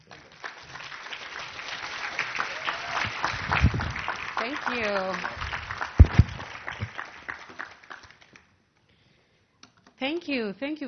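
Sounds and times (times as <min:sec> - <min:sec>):
seminar audience applause welcoming a speaker: 0:00.0 - 0:08.5
speech: 0:04.5 - 0:05.4, 0:10.0 - 0:10.8.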